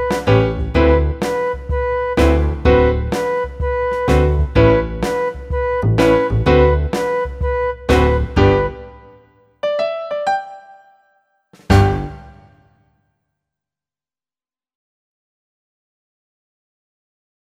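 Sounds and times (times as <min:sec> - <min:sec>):
B-flat blues backing track: 0:00.0 - 0:09.0, 0:11.6 - 0:12.4.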